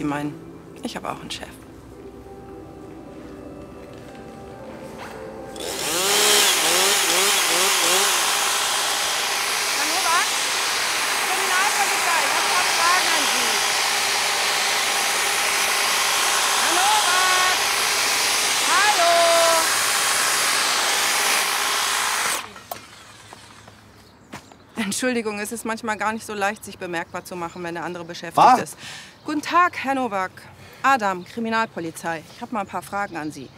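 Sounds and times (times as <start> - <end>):
speech: 0.0 - 1.6, 25.0 - 33.5
motor-driven hedge trimmer cutting a hedge: 5.4 - 23.9.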